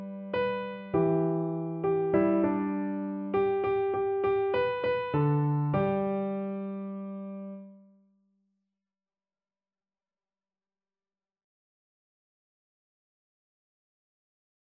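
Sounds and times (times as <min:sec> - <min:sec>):
piano duet: 0:00.0 - 0:07.9.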